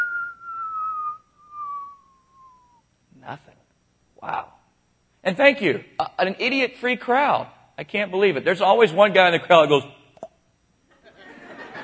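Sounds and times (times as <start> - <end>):
whistle imitating a rock falling down a hole: 0.0 - 2.8
speech: 3.3 - 3.6, 4.2 - 4.5, 5.2 - 10.0
laughter: 10.9 - 11.8.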